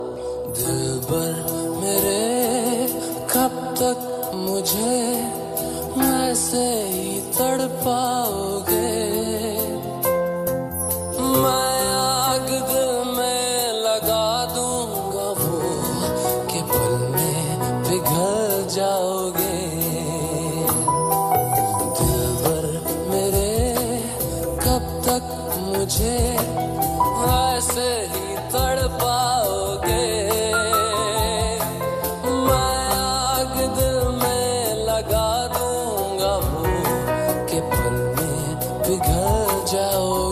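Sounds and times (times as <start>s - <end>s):
romantic ringtone: 0.0s - 40.3s.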